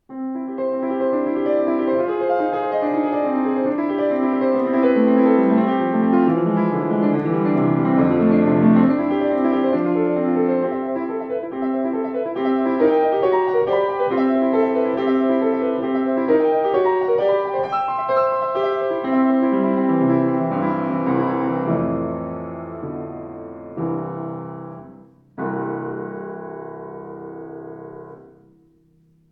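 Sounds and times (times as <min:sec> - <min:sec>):
Grotrian piano piece: 0:00.0 - 0:29.3.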